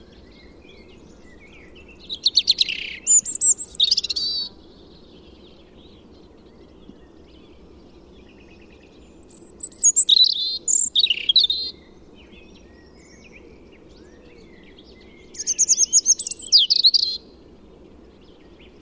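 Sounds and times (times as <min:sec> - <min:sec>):
European robin song: 0:02.4 - 0:04.5, 0:09.3 - 0:11.7.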